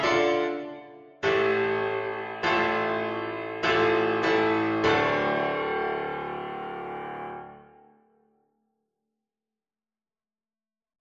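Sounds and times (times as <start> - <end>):
solo piano: 0.0 - 7.9.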